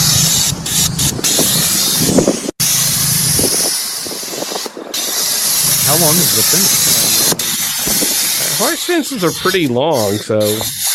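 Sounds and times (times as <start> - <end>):
hissing like a dental suction device: 0.0 - 10.9
speech: 8.6 - 10.8.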